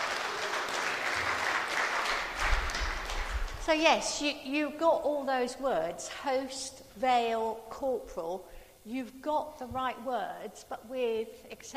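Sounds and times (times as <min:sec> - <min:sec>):
audience applause: 0:00.0 - 0:03.7
speech: 0:03.7 - 0:11.7.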